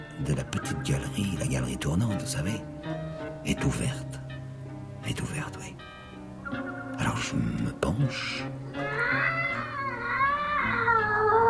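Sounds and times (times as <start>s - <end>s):
speech: 0.2s - 4.2s, 5.0s - 5.9s, 7.0s - 9.4s
cat caterwauling: 8.8s - 11.4s.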